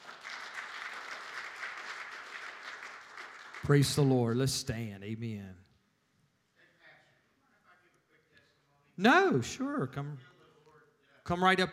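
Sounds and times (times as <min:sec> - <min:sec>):
audience applause: 0:00.0 - 0:04.1
speech: 0:03.7 - 0:05.6, 0:09.0 - 0:10.3, 0:11.3 - 0:11.7.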